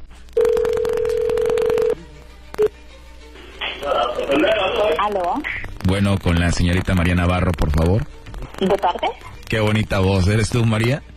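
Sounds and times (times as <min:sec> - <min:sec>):
telephone dialing tones: 0:00.4 - 0:02.0
speech: 0:04.3 - 0:11.1.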